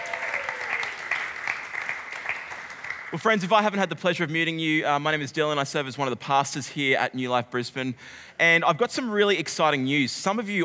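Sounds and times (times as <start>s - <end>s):
audience applause: 0.0s - 3.2s
speech: 3.1s - 10.6s.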